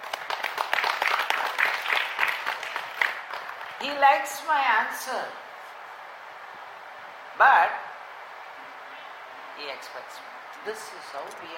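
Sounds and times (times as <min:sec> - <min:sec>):
audience clapping: 0:00.0 - 0:03.8
speech: 0:03.8 - 0:05.4, 0:07.4 - 0:07.8, 0:09.6 - 0:11.5.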